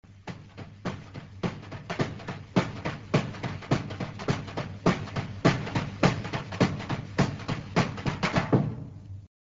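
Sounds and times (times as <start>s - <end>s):
rhythm: 0.0s - 9.3s.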